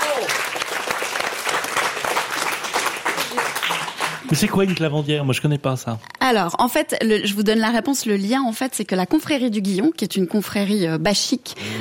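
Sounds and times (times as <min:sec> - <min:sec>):
audience applause: 0:00.0 - 0:05.2
speech: 0:04.3 - 0:11.7.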